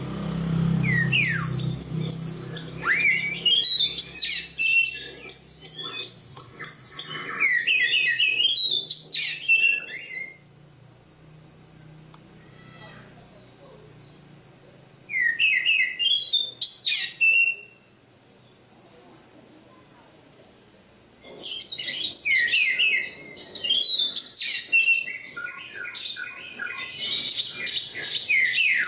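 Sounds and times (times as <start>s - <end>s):
Oriental magpie-robin singing: 0.8s - 10.4s, 15.1s - 18.6s, 21.4s - 28.8s.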